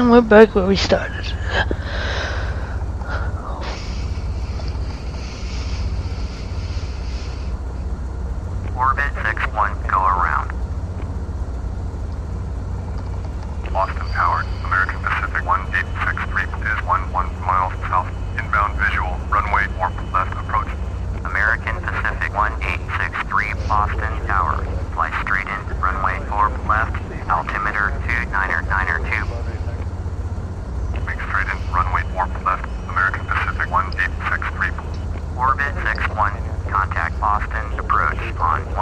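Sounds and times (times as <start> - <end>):
speech: 0.0 - 2.1
Airbus airliner engines in a flight simulator: 0.0 - 38.7.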